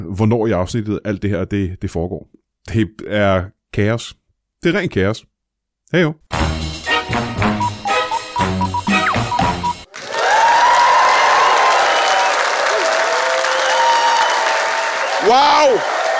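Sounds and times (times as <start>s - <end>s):
speech: 0.0s - 5.3s, 5.9s - 6.6s, 15.3s - 16.0s
upbeat music: 6.3s - 9.9s
large audience applauding and cheering: 9.9s - 16.1s
whoops: 10.0s - 16.1s.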